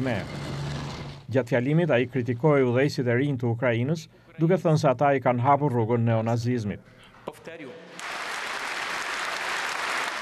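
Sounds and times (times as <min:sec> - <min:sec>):
speech: 0:00.0 - 0:00.4, 0:01.3 - 0:07.9
applause after a speech: 0:07.9 - 0:10.2.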